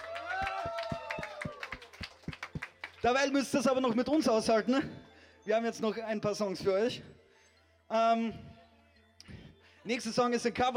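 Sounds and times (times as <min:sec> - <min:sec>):
audience rhythmic handclaps at a live radio concert: 0:00.0 - 0:04.5
speech: 0:03.0 - 0:07.1, 0:07.9 - 0:08.4, 0:09.8 - 0:10.7.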